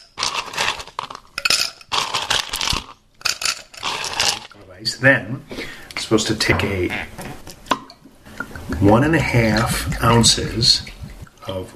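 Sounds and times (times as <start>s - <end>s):
ice cubes clattering into a glass: 0.0s - 4.5s
speech: 4.8s - 7.2s, 8.8s - 10.9s, 11.5s - 11.7s.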